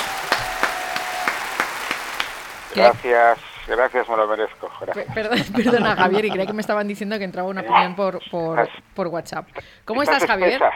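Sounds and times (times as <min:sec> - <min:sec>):
studio audience applause: 0:00.0 - 0:06.8
laughter: 0:02.7 - 0:08.6
speech: 0:02.8 - 0:10.7.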